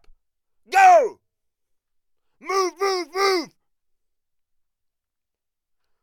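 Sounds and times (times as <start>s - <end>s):
stand up shouts: 0.7s - 1.1s, 2.5s - 3.5s.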